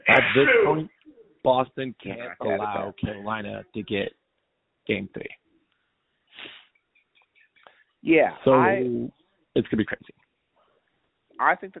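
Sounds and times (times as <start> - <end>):
sneeze: 0.0 - 0.8
speech: 0.2 - 4.2, 4.8 - 5.4, 8.0 - 10.2, 11.4 - 11.7.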